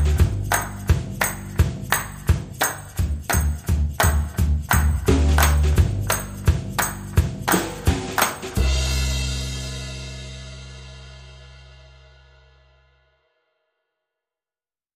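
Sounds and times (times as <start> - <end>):
percussion: 0.0 - 12.2
drums: 0.0 - 12.7
bass: 0.0 - 13.4.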